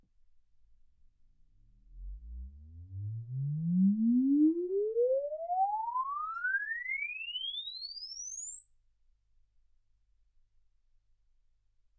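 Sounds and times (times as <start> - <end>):
exponential sine sweep from 10 Hz to 24 kHz: 1.9 - 9.7.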